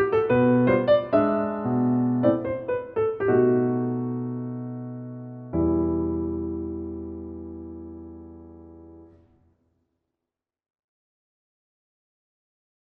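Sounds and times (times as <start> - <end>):
piano: 0.0 - 9.5.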